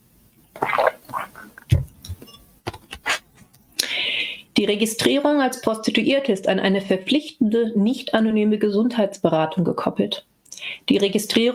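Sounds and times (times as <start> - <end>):
person slurping and gulping water: 0.5 - 2.3
quick breathy mouth noises: 0.5 - 2.3, 2.9 - 3.4
speech: 4.6 - 10.3, 10.9 - 11.5.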